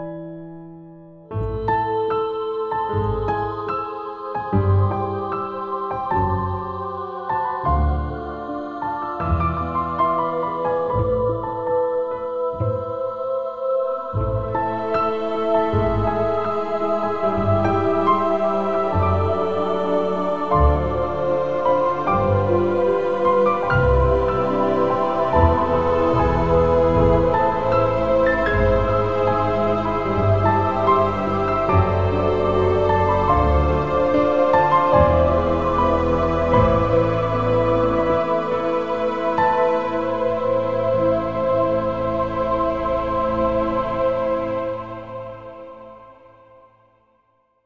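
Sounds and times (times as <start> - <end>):
sad music: 1.3 - 46.6.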